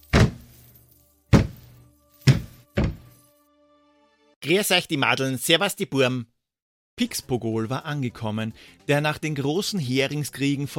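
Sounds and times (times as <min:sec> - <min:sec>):
heavy footsteps approaching: 0:00.1 - 0:00.6, 0:01.3 - 0:03.2
speech: 0:04.4 - 0:06.3, 0:07.0 - 0:10.7.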